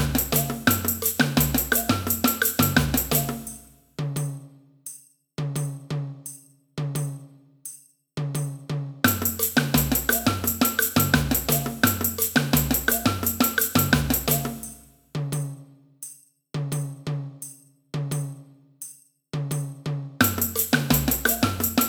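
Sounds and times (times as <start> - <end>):
surdo drum playing samba: 0.0 - 4.5, 8.2 - 15.7, 16.6 - 17.4, 18.0 - 18.5, 19.4 - 21.8.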